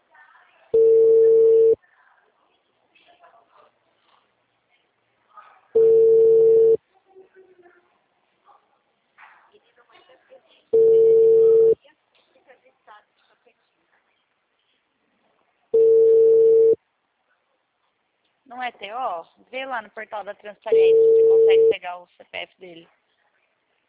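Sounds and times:
telephone line tones while calling a client: 0:00.8 - 0:01.8, 0:05.8 - 0:06.8, 0:10.8 - 0:11.8, 0:15.8 - 0:16.8, 0:20.7 - 0:21.7
speech: 0:18.7 - 0:23.0.

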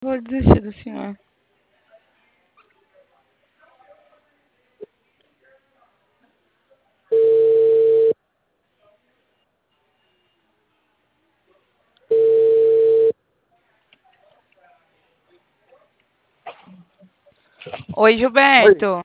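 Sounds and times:
telephone line beeps after a dropped call: 0:07.1 - 0:08.2, 0:12.1 - 0:13.1
speech: 0:18.0 - 0:19.0.

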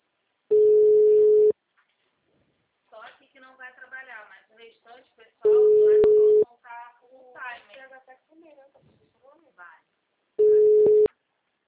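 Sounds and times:
telephone ringback tone while placing a call: 0:00.5 - 0:01.5, 0:05.5 - 0:06.4, 0:10.4 - 0:11.1.

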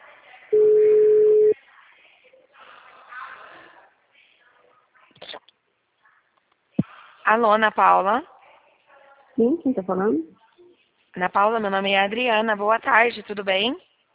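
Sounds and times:
phone call ringback tone: 0:00.6 - 0:01.6
speech: 0:07.3 - 0:08.3, 0:09.4 - 0:10.4, 0:11.2 - 0:13.9.

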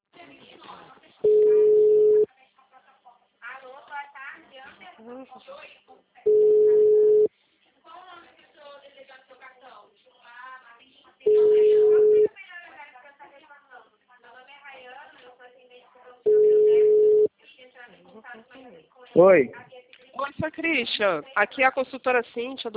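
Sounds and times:
telephone busy tone beeps after a dropped call: 0:01.2 - 0:02.3, 0:06.3 - 0:07.3, 0:11.3 - 0:12.3, 0:16.3 - 0:17.3
speech: 0:05.0 - 0:05.8, 0:19.2 - 0:19.7, 0:20.4 - 0:22.7.

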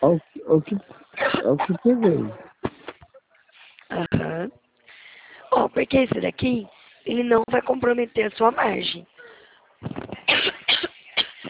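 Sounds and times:
speech: 0:00.0 - 0:02.4, 0:03.9 - 0:04.6, 0:05.6 - 0:09.1
person coughing: 0:01.2 - 0:02.0, 0:10.3 - 0:11.4.

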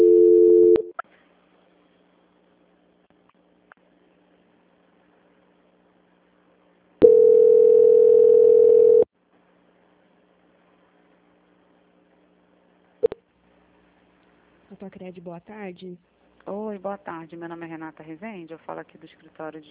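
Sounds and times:
telephone line tones during call transfer: 0:00.0 - 0:00.9, 0:07.0 - 0:09.1
speech: 0:15.0 - 0:19.6.

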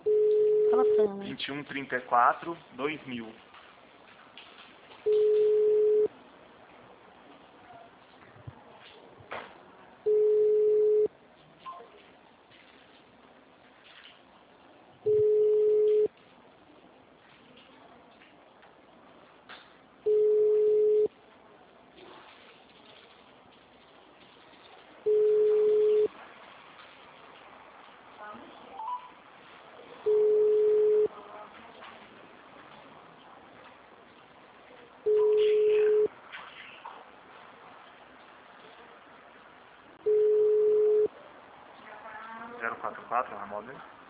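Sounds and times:
telephone call tone: 0:00.0 - 0:01.1, 0:05.1 - 0:06.1, 0:10.1 - 0:11.1, 0:15.1 - 0:16.1, 0:20.1 - 0:21.1, 0:25.1 - 0:26.1, 0:30.1 - 0:31.1, 0:35.1 - 0:36.1, 0:40.0 - 0:41.1
speech: 0:00.8 - 0:03.5, 0:42.8 - 0:44.0.

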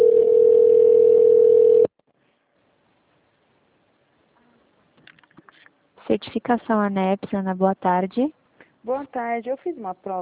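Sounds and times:
telephone line connecting tone: 0:00.0 - 0:01.9
speech: 0:06.2 - 0:10.2.

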